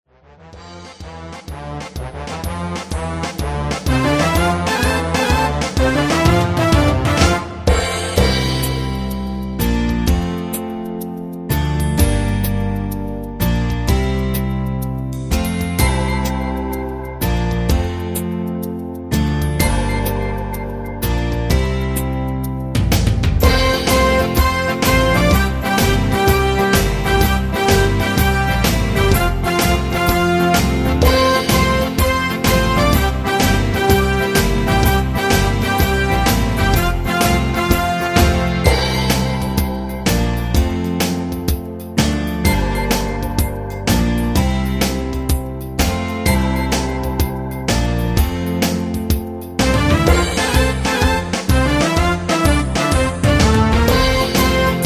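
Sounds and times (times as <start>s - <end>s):
instrumental music: 0.2s - 54.8s.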